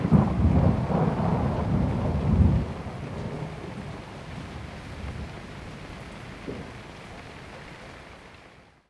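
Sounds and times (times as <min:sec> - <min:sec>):
thunderstorm: 0:00.0 - 0:06.8.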